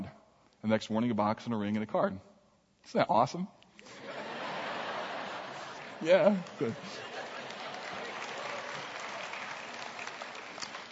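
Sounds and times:
speech: 0:00.6 - 0:04.0, 0:06.0 - 0:07.1
laughter: 0:03.8 - 0:09.4
audience clapping: 0:05.4 - 0:10.9.

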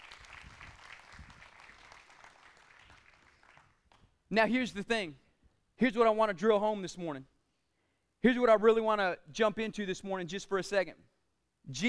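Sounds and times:
audience applause: 0:00.0 - 0:03.8
speech: 0:04.3 - 0:05.2, 0:05.8 - 0:07.3, 0:08.2 - 0:11.8.

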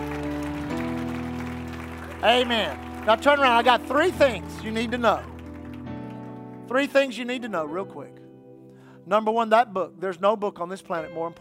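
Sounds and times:
audience hand clapping: 0:00.0 - 0:06.9
speech: 0:02.2 - 0:05.3, 0:06.7 - 0:08.2, 0:09.0 - 0:11.3.

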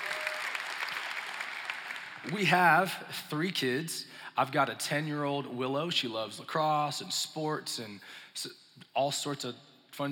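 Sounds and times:
audience clapping: 0:00.0 - 0:02.6
speech: 0:02.2 - 0:10.0.

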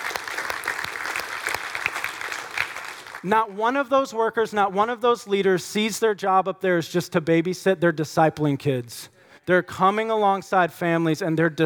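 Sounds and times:
audience applause: 0:00.0 - 0:03.3
speech: 0:03.2 - 0:11.6.

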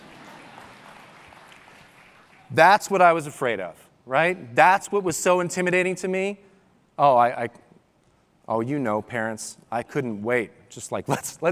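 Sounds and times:
audience clapping: 0:00.0 - 0:02.5
speech: 0:02.5 - 0:07.6, 0:08.5 - 0:11.4.

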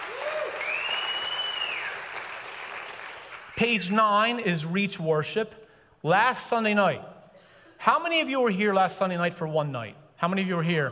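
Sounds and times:
audience clapping: 0:00.0 - 0:04.0
speech: 0:03.6 - 0:07.1, 0:07.8 - 0:10.9.

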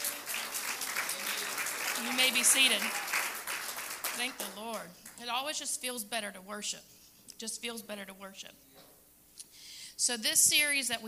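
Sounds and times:
audience hand clapping in praise: 0:00.0 - 0:05.2
speech: 0:02.0 - 0:03.1, 0:04.2 - 0:08.9, 0:10.0 - 0:11.0.

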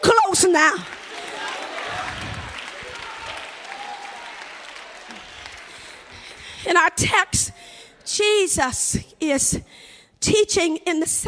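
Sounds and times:
speech: 0:00.4 - 0:01.0, 0:06.6 - 0:11.2
audience clapping hands: 0:00.6 - 0:06.7.

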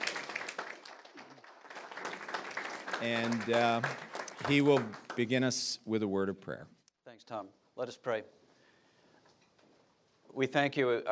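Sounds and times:
audience applause: 0:00.0 - 0:05.7
speech: 0:03.0 - 0:08.4, 0:10.4 - 0:11.0.

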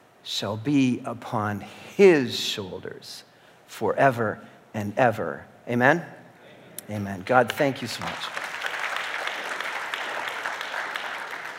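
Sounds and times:
speech: 0:00.2 - 0:06.2, 0:06.9 - 0:08.4
audience applauding: 0:08.0 - 0:11.5.

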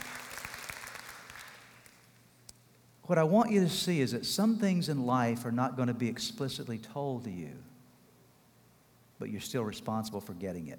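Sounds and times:
audience applause: 0:00.0 - 0:02.0
speech: 0:03.1 - 0:07.7, 0:09.2 - 0:10.7.

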